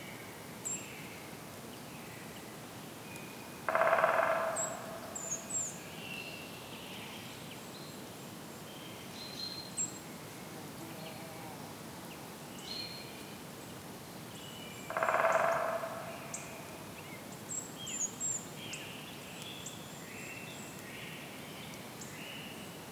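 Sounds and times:
distant woodpecker drumming: 0:03.7 - 0:05.6, 0:14.9 - 0:16.8.

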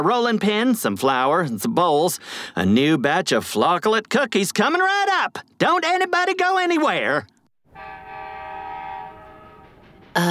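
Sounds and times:
speech: 0:00.0 - 0:08.0
approaching train horn blasts: 0:07.7 - 0:10.1.

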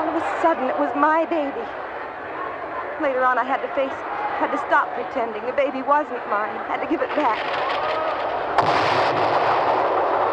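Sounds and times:
speech: 0:00.2 - 0:01.9, 0:03.0 - 0:08.0
fireworks bursting with dense crackling roar: 0:07.1 - 0:10.3
sharp bang: 0:08.5 - 0:10.0.

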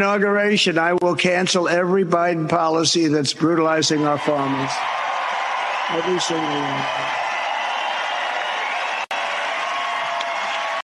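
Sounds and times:
speech: 0:00.0 - 0:05.0, 0:05.9 - 0:07.2
enthusiastic rally crowd cheering: 0:03.6 - 0:10.8.

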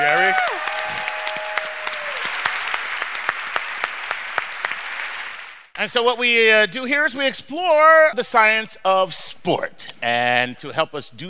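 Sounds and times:
crowd round of applause: 0:00.0 - 0:05.7
speech: 0:05.8 - 0:11.2.

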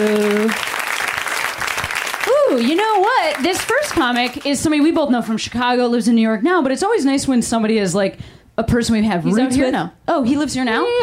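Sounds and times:
crowd applauding: 0:00.0 - 0:04.6
speech: 0:02.5 - 0:11.0.

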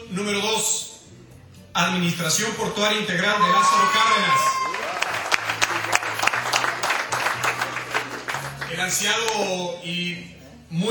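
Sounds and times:
speech: 0:00.1 - 0:00.8, 0:01.8 - 0:04.6, 0:08.7 - 0:10.8
audience applause at award ceremony: 0:03.4 - 0:09.0.

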